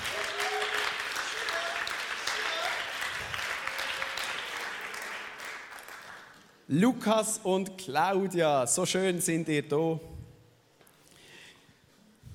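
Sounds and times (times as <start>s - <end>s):
audience applause: 0.0s - 6.4s
speech: 6.7s - 10.1s.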